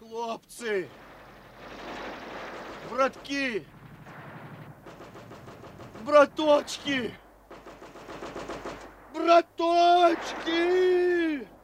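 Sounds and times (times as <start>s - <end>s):
speech: 0.4s - 1.0s, 3.0s - 3.8s, 6.1s - 7.2s, 9.2s - 11.5s
machine gun fire: 0.9s - 9.2s, 10.1s - 10.9s.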